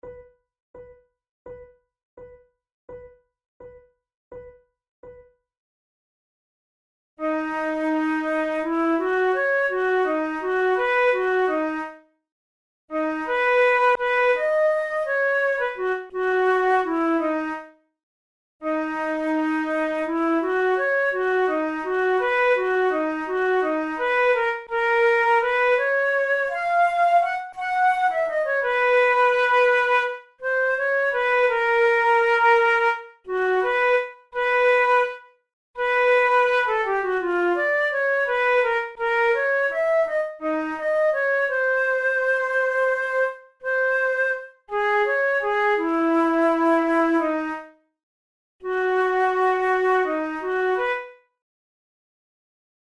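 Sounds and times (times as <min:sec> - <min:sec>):
flute method exercise: 0:07.2 - 0:12.1, 0:12.9 - 0:17.8, 0:18.6 - 0:47.9, 0:48.6 - 0:51.3.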